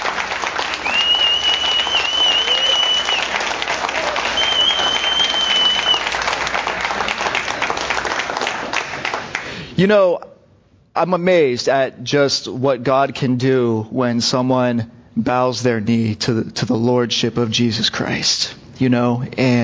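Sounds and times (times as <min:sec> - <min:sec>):
audience applause: 0:00.0 - 0:09.6
shrill whistles: 0:00.7 - 0:06.2
speech: 0:09.8 - 0:10.3, 0:11.0 - 0:19.6.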